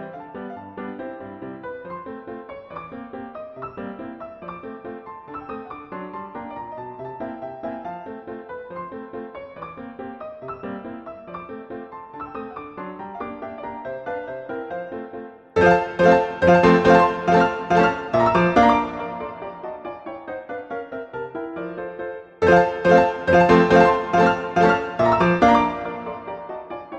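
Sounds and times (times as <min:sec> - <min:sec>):
pizzicato polka: 0:15.6 - 0:19.8, 0:22.4 - 0:26.4.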